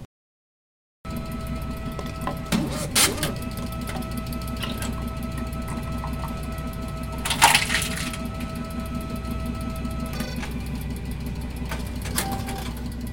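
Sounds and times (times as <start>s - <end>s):
bottle deposit return machine shredder at a supermarket: 1.2s - 13.0s.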